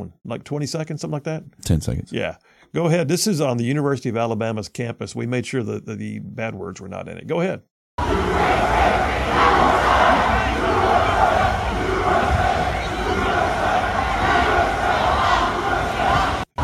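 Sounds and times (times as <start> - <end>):
speech: 0.0 - 11.2
crowd of students chanting: 8.0 - 16.6.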